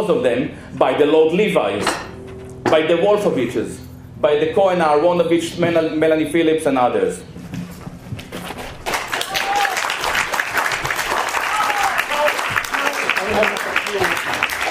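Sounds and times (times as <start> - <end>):
speech: 0.0 - 2.1, 2.7 - 7.4
audience applause: 8.8 - 14.7.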